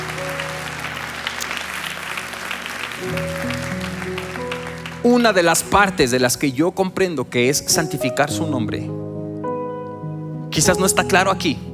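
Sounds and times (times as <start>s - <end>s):
church congregation applauding during a Spanish-language sermon: 0.0s - 6.3s
speech: 3.0s - 3.5s, 5.0s - 9.0s, 10.6s - 11.7s.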